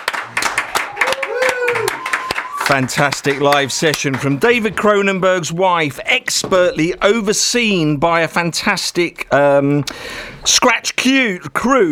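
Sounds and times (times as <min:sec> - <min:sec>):
round of applause from studio crew: 0:00.0 - 0:04.4
speech: 0:02.7 - 0:11.9.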